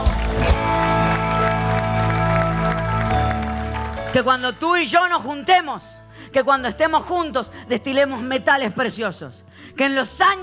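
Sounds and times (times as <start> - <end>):
loud audience applause: 0.0 - 4.6
speech: 4.1 - 10.4.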